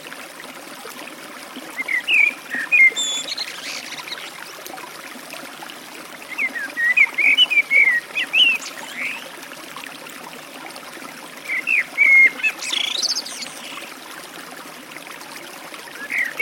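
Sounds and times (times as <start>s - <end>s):
Eurasian blackbird delivering warbled whistles beside a forest stream: 1.8s - 4.4s, 6.3s - 9.3s, 11.5s - 13.9s, 15.9s - 16.4s.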